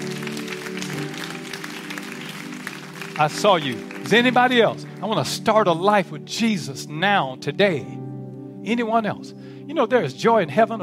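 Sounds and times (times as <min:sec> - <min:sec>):
audience clapping: 0:00.0 - 0:05.8
speech: 0:03.2 - 0:08.0, 0:08.6 - 0:10.8.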